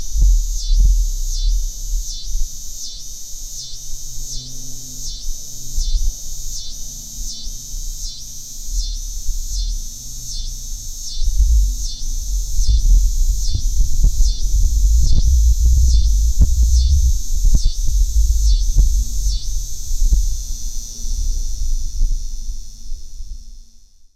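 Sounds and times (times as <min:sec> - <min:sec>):
coastal scissor grinder cicada singing: 0:00.0 - 0:24.1.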